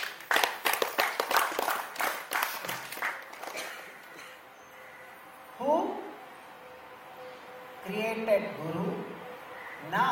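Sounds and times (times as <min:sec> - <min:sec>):
audience clapping: 0:00.0 - 0:03.8
speech: 0:08.2 - 0:09.0.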